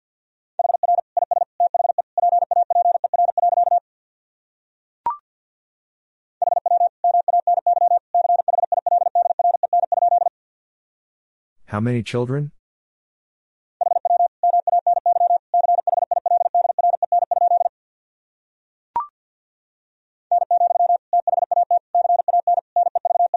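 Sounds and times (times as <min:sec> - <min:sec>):
very fast Morse code tones at 50 wpm: 0:00.6 - 0:03.8, 0:06.4 - 0:10.3, 0:13.8 - 0:17.7, 0:20.3 - 0:23.3
speech: 0:11.7 - 0:12.6.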